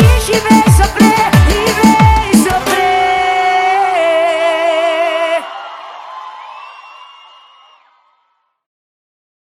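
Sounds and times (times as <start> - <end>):
reggaeton beat: 0.0 - 5.2.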